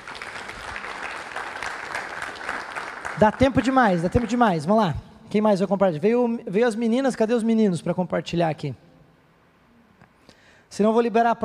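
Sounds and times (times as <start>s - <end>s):
audience applause: 0.0s - 4.5s
speech: 3.2s - 8.8s, 10.8s - 11.4s.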